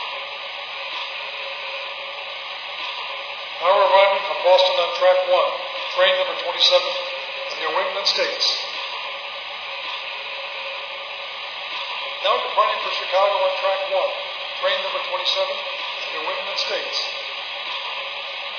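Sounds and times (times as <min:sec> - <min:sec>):
trains: 0:00.0 - 0:18.5.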